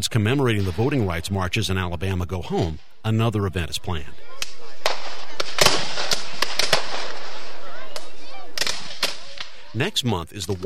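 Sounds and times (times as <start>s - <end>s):
speech: 0.0s - 4.5s, 9.8s - 10.6s
Civil War buffs firing blanks at a reenactment: 4.4s - 9.7s.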